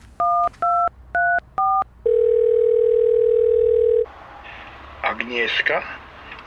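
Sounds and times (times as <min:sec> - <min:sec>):
phone keypad beeps: 0:00.2 - 0:04.0
speech: 0:05.4 - 0:06.4.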